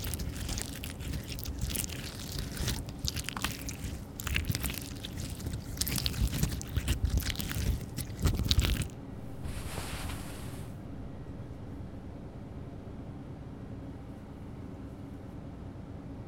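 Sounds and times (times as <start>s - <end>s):
slime squelching in the ears: 0.0s - 10.6s.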